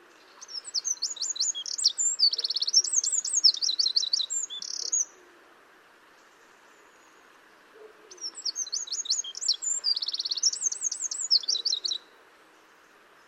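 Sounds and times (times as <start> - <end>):
Eurasian wren Troglodytes troglodytes singing high trills and rattles: 0.4 - 5.0, 8.2 - 12.0.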